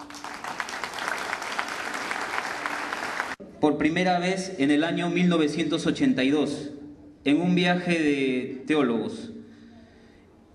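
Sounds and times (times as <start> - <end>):
audience applause: 0.0 - 3.4
speech: 3.6 - 9.3.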